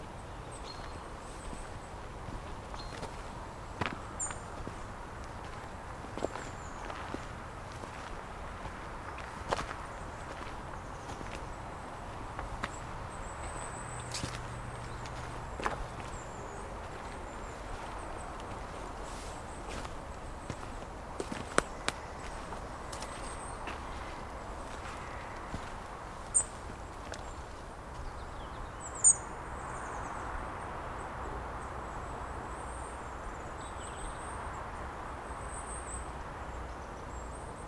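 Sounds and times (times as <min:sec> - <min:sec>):
forest ambience: 0:00.0 - 0:37.6.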